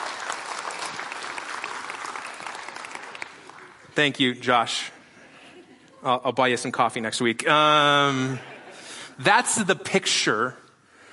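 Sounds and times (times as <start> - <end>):
audience applause: 0.0 - 4.0
speech: 4.0 - 5.0, 6.0 - 8.5, 9.2 - 10.6.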